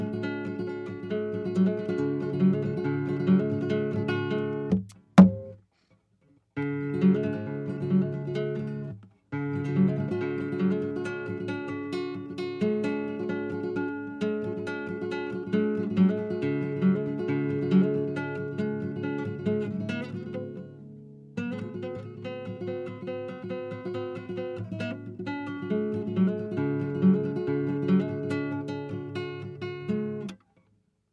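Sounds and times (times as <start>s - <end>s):
acoustic guitar practice: 0.0s - 31.1s.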